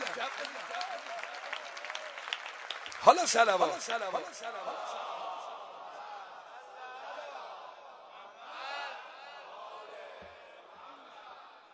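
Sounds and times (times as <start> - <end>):
audience clapping at a gathering: 0.0 - 5.0
speech: 3.0 - 5.1.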